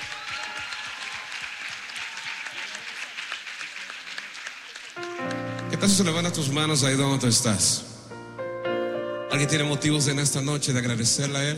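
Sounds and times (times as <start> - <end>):
audience applause: 0.0 - 6.6
speech: 5.8 - 7.9, 9.4 - 11.5.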